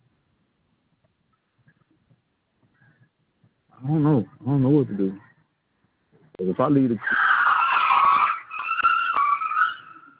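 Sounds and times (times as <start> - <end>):
speech: 3.8 - 5.3, 6.4 - 7.2
car tyres skidding after the car lost its brakes: 7.0 - 10.1.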